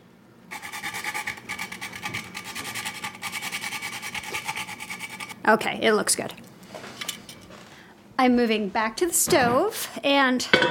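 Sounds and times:
grating fresh nutmeg on a small nutmeg grater: 0.5s - 5.4s
speech: 5.5s - 6.4s, 8.2s - 10.7s.

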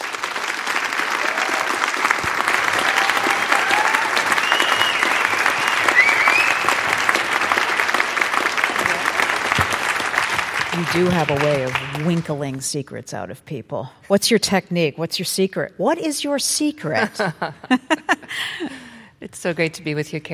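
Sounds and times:
audience at the Fitzgerald Theater applauding a guest: 0.0s - 12.5s
speech: 10.8s - 20.3s
laughter: 16.9s - 18.8s.

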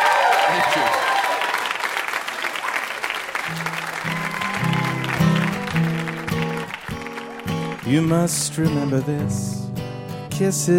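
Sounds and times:
audience applause: 0.0s - 8.6s
speech: 7.9s - 9.6s, 10.4s - 10.7s.

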